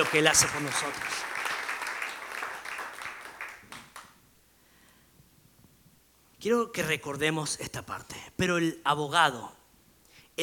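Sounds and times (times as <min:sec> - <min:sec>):
speech: 0:00.0 - 0:01.4, 0:06.4 - 0:09.6
audience applause: 0:00.0 - 0:04.0.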